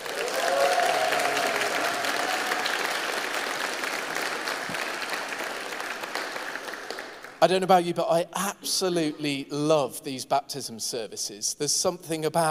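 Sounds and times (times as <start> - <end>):
people whooping: 0.0 - 3.4
audience applause and cheering: 0.0 - 7.4
speech: 7.4 - 12.4.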